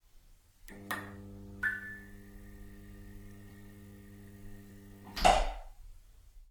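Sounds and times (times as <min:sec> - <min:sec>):
neon light switching on: 0:00.6 - 0:05.7.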